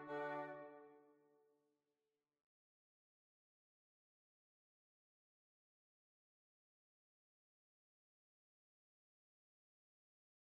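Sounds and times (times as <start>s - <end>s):
polka music: 0.0s - 0.8s.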